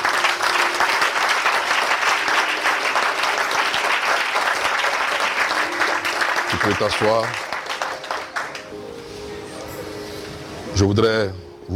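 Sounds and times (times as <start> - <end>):
congregation applauding at a church service: 0.0 - 9.1
speech: 6.6 - 7.5, 10.8 - 11.7.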